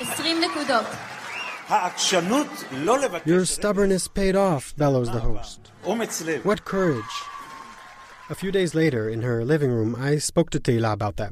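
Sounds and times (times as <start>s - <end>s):
studio audience cheering with excited whoops and shouts: 0.0s - 3.3s, 6.0s - 8.8s
speech: 0.3s - 1.1s, 1.7s - 7.3s, 8.3s - 11.3s.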